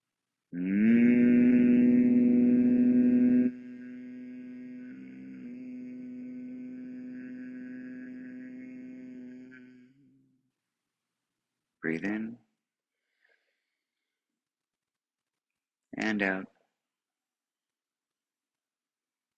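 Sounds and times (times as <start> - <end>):
speech: 0.5 - 0.9, 16.2 - 16.5
group humming: 0.6 - 10.0.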